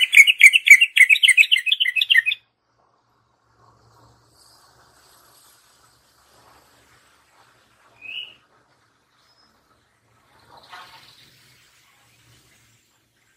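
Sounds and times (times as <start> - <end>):
yellow-vented bulbul chattering warbled song: 0.0 - 2.4.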